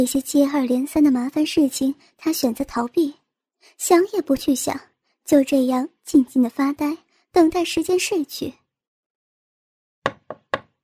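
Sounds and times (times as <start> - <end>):
speech: 0.0 - 8.6
knocks on a hotel room door: 10.0 - 10.8.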